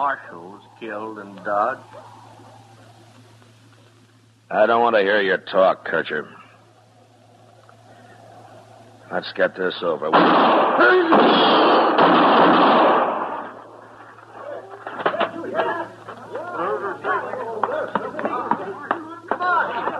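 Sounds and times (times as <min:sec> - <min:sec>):
speech: 0:00.0 - 0:02.2, 0:04.5 - 0:06.4, 0:09.1 - 0:11.5
gunshots in a gunfight involving a marshal: 0:10.0 - 0:13.8
laughter: 0:14.1 - 0:19.9.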